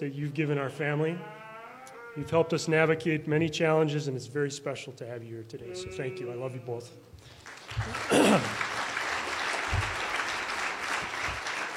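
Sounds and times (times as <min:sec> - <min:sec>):
speech: 0:00.0 - 0:01.4, 0:02.2 - 0:08.7
applause: 0:07.2 - 0:11.7.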